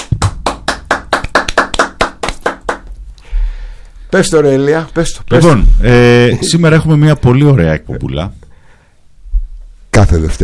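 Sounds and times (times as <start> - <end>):
hand clapping: 0.0 - 3.0
speech: 4.1 - 8.4, 10.0 - 10.4.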